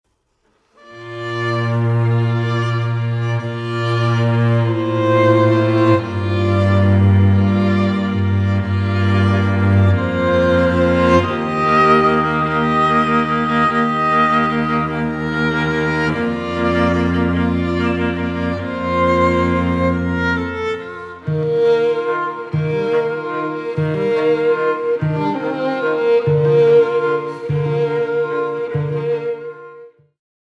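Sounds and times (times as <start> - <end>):
strings: 0.8 - 30.0.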